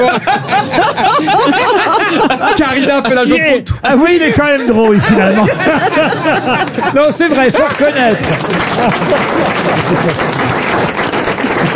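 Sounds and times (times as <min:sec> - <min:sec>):
laughter: 0:00.0 - 0:11.7
speech: 0:02.6 - 0:11.0
audience applause: 0:05.5 - 0:11.7.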